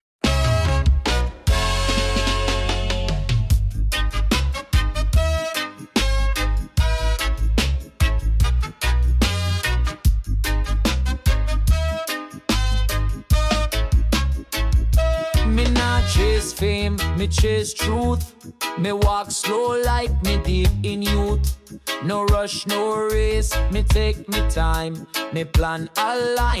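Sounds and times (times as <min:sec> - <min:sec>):
reggae music: 0:00.2 - 0:26.5.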